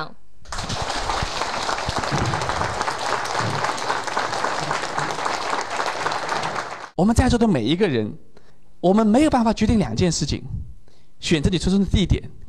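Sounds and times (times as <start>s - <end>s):
large audience applause: 0.5s - 7.0s
speech: 7.0s - 10.6s, 11.2s - 12.4s.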